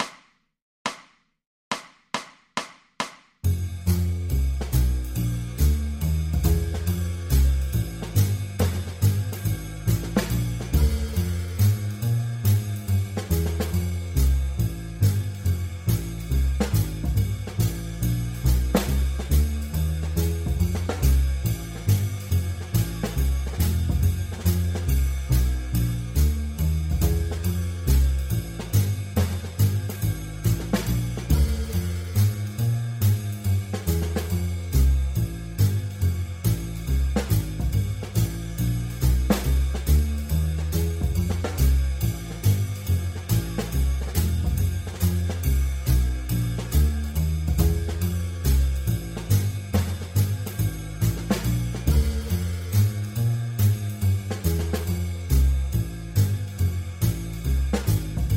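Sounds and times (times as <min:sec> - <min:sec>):
blues backing track: 0:03.5 - 0:58.3.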